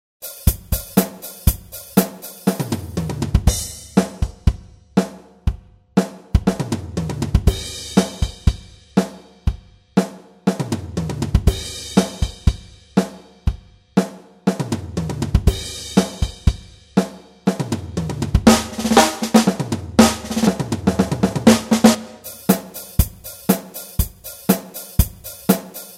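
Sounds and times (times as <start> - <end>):
drum: 0.2 - 25.9.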